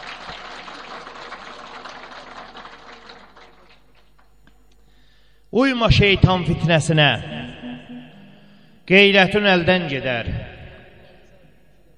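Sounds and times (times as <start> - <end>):
guests at a gathering applauding in honour of the elders: 0.0 - 4.4
speech: 5.5 - 7.4, 8.9 - 10.4.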